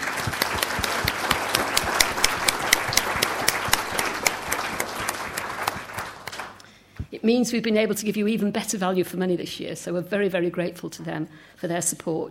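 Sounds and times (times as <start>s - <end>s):
crowd applauding: 0.0s - 6.6s
speech: 7.2s - 12.2s.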